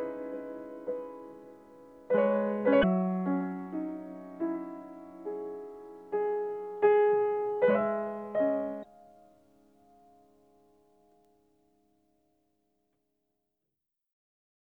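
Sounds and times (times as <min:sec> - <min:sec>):
piano music: 0:00.0 - 0:10.3.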